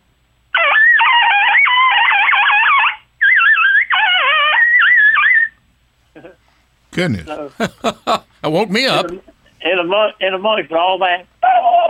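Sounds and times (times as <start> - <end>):
imitated coyote call: 0.6 - 5.5
laughter: 7.0 - 9.2
speech: 7.0 - 11.3.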